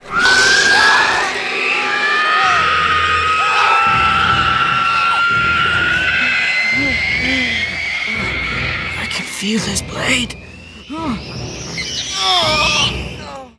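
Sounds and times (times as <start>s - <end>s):
long screech: 0.0s - 13.2s.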